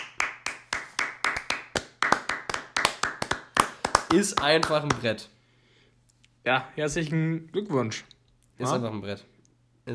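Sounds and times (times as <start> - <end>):
hand clapping: 0.0 - 5.2
speech: 4.1 - 5.4, 6.4 - 9.9.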